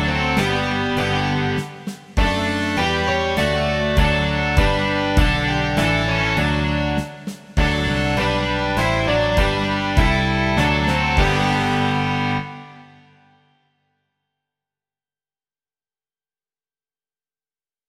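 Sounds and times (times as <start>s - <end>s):
rock music: 0.0s - 13.0s.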